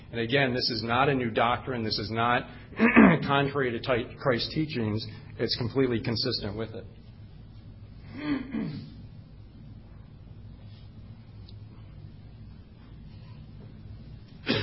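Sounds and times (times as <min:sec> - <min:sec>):
low steady hum: 0:00.0 - 0:14.6
speech: 0:00.1 - 0:07.0, 0:08.2 - 0:08.9
person coughing: 0:02.8 - 0:03.3, 0:08.1 - 0:09.0, 0:14.4 - 0:14.6.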